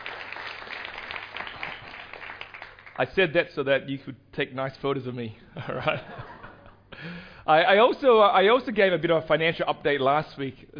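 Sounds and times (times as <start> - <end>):
church congregation applauding to thank a preacher: 0.0 - 3.2
speech: 3.0 - 6.2, 7.0 - 10.7
laughter: 5.6 - 6.8.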